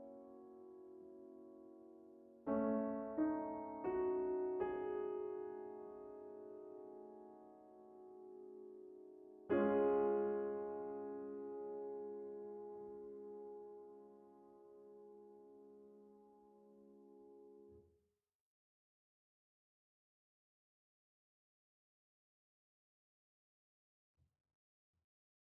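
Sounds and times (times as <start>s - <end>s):
contemporary piano arpeggio: 0.0s - 17.6s.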